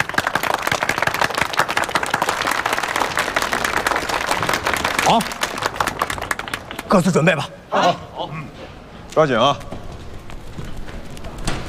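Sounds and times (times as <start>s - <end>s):
group applause: 0.0s - 7.5s
speech: 5.1s - 5.4s, 6.9s - 8.6s, 9.2s - 9.8s.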